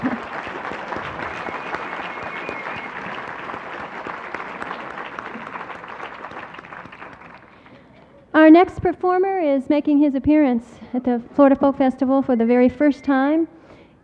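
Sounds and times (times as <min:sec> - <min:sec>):
audience applause: 0:00.0 - 0:07.8
speech: 0:08.5 - 0:13.6.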